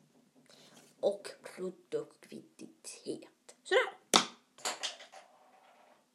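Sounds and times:
speech: 1.0s - 3.9s
pen dropped on the floor: 4.2s - 6.0s.

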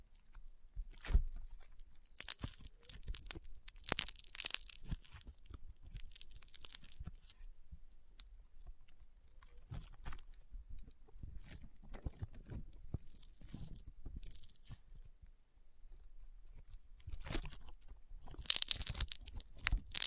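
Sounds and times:
rainbow honeycomb slime crunching and popping: 0.8s - 7.5s, 9.6s - 15.0s, 17.1s - 20.0s.

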